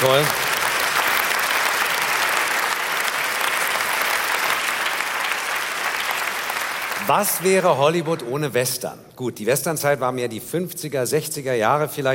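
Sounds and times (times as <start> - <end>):
speech: 0.0 - 0.4, 7.1 - 12.1
audience applause: 0.0 - 8.3.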